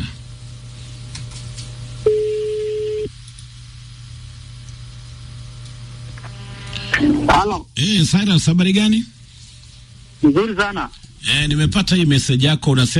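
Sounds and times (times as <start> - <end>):
telephone line ringing tone as a call is placed to a listener: 2.0 - 3.1
speech: 7.4 - 9.2, 10.2 - 12.9.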